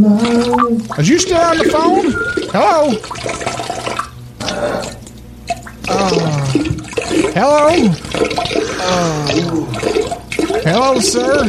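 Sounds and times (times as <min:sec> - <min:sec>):
man urinating: 0:00.0 - 0:11.4
speech: 0:01.0 - 0:03.8, 0:07.4 - 0:11.4.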